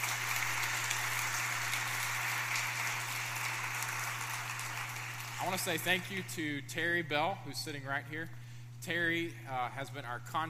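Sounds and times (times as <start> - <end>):
audience applause: 0.0 - 6.2
speech: 5.4 - 10.4.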